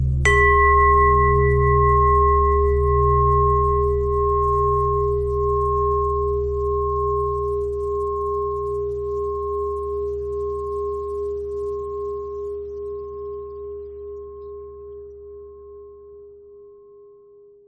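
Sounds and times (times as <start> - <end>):
pentatonic bell melody: 0.2 - 14.1.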